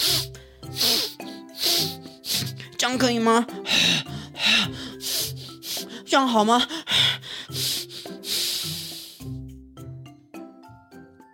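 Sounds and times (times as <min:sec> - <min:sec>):
air blown out through the nose to clear the nostrils after choking on water: 0:00.0 - 0:02.7, 0:04.9 - 0:05.9, 0:07.5 - 0:09.4
speech: 0:02.8 - 0:04.8, 0:06.1 - 0:06.8.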